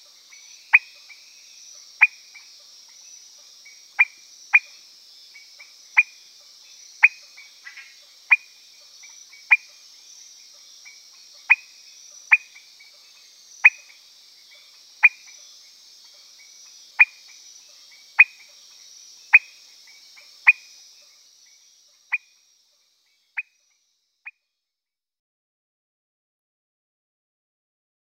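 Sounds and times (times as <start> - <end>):
Leptodactylus petersii frog calling: 0.0 - 6.2, 6.9 - 9.8, 10.8 - 22.4, 23.2 - 23.6.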